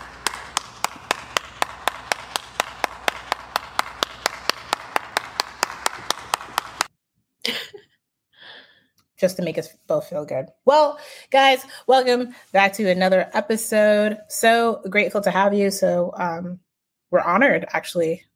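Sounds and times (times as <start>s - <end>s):
hands clapping: 0.0s - 6.9s
speech: 9.2s - 18.3s.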